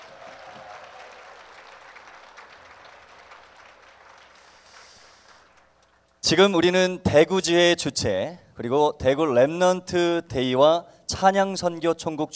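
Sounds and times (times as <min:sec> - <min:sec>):
audience applause: 0:00.0 - 0:05.8
speech: 0:06.2 - 0:12.3.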